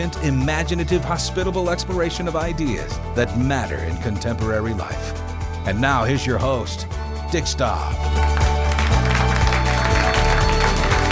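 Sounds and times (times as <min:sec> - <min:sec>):
speech: 0:00.0 - 0:08.4
live audience applauding: 0:08.1 - 0:11.1.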